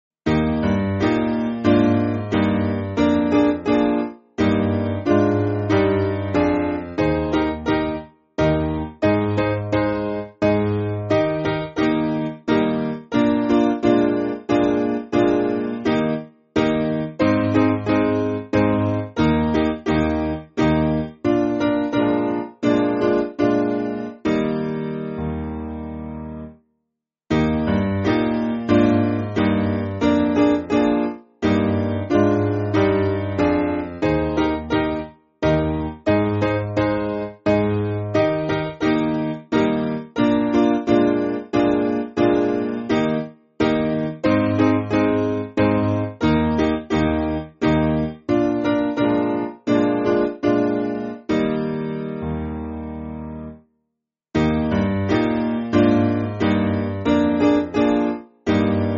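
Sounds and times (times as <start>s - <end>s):
piano backing music for churches: 0.2s - 26.6s, 27.3s - 53.6s, 54.4s - 58.9s.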